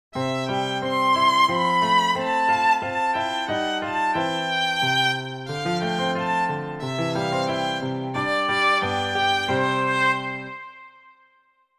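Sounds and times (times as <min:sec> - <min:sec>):
violin: 0:00.1 - 0:11.2.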